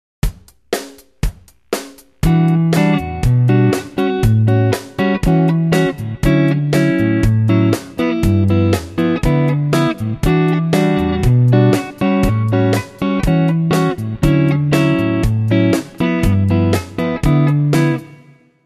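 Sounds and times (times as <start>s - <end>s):
rhythm guitar: 0.2s - 18.4s.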